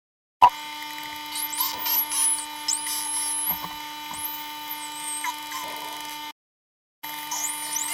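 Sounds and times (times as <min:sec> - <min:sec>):
spinner dolphin pulsed calls with squeaky whistles and buzzy bursts: 0:01.2 - 0:06.1, 0:07.1 - 0:07.9.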